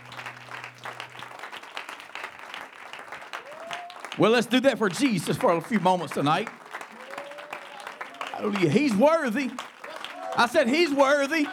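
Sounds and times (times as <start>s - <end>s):
low hum: 0.0s - 1.6s
congregation applauding to welcome a preacher to the pulpit: 0.0s - 11.5s
speech: 4.2s - 6.6s, 8.4s - 9.6s, 10.4s - 11.5s.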